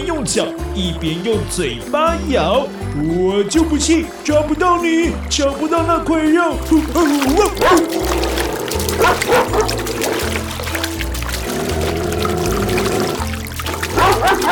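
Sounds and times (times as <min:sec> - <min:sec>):
speech: 0:00.0 - 0:09.9
music: 0:00.0 - 0:14.5
water splashing and churning in a stream: 0:04.8 - 0:14.5
dog barking and yipping excitedly: 0:07.6 - 0:10.4, 0:13.9 - 0:14.5.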